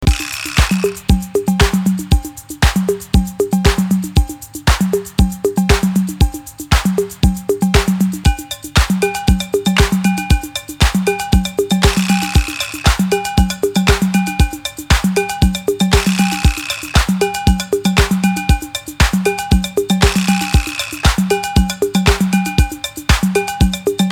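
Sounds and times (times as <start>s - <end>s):
disco music: 0.0s - 24.0s.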